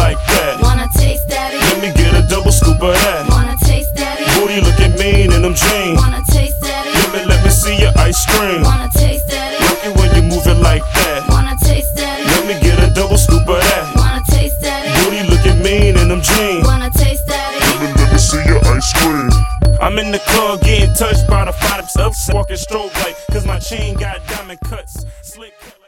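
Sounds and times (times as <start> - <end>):
hip hop music: 0.0 - 25.8.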